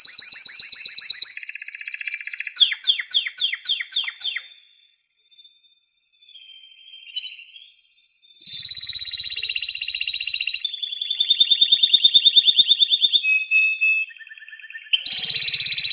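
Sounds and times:
canary singing whistles and trills: 0.0s - 4.6s, 8.4s - 15.9s.

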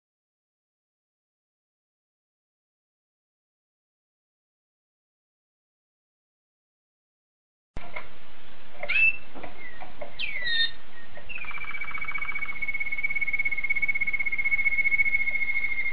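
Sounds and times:
domestic canary song: 8.7s - 15.9s.

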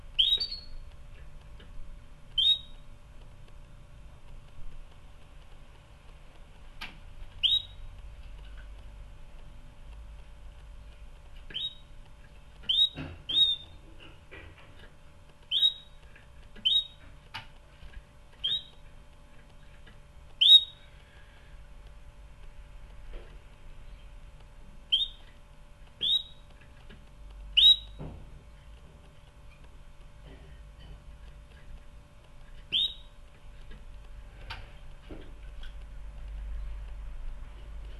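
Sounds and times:
canary whistled calls: 0.2s - 0.8s, 2.4s - 2.8s, 7.4s - 7.8s, 11.5s - 11.9s, 12.6s - 13.8s, 15.5s - 16.0s, 16.6s - 17.0s, 18.4s - 18.8s, 20.4s - 20.8s, 24.9s - 25.3s, 26.0s - 26.4s, 27.6s - 28.0s, 32.7s - 33.1s.

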